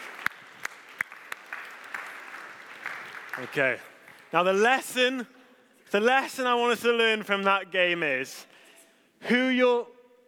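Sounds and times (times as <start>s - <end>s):
audience applause: 0.0s - 4.3s
speech: 3.4s - 8.5s, 9.2s - 9.9s.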